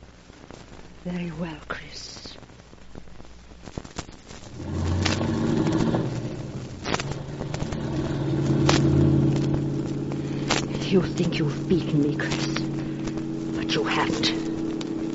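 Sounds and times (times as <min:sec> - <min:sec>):
speech: 0:01.0 - 0:02.4, 0:10.9 - 0:12.6, 0:13.7 - 0:14.5
car engine rumbling while driving: 0:04.5 - 0:15.1.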